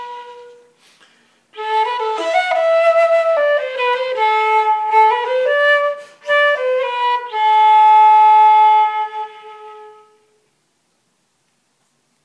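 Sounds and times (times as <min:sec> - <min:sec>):
celtic tunes: 0:00.0 - 0:00.9, 0:01.5 - 0:10.3.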